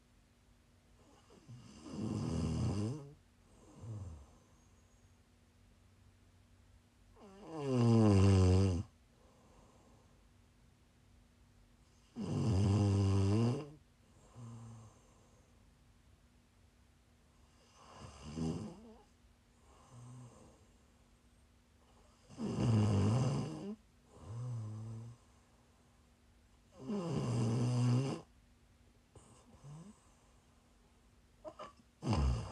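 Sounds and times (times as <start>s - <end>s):
faint steady hum: 0.0s - 32.5s
person snoring: 1.0s - 4.4s, 7.2s - 8.9s, 12.0s - 15.2s, 17.6s - 19.0s, 22.2s - 25.2s, 26.7s - 28.3s, 31.4s - 32.5s
quiet breaths: 9.1s - 10.3s, 14.1s - 15.7s, 19.6s - 21.1s, 24.1s - 26.2s, 29.2s - 30.8s.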